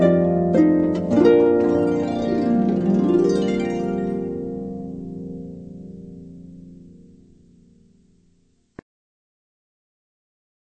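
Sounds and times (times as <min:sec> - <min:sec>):
solo harp: 0:00.0 - 0:08.0.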